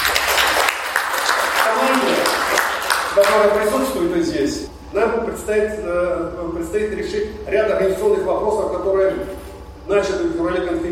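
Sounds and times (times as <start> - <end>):
audience applause: 0.0 - 3.6
speech: 3.2 - 10.8.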